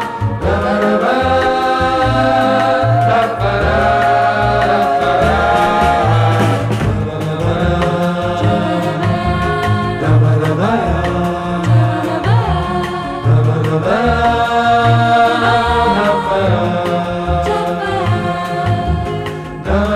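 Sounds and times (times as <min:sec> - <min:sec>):
dub bossa nova music: 0:00.0 - 0:19.9.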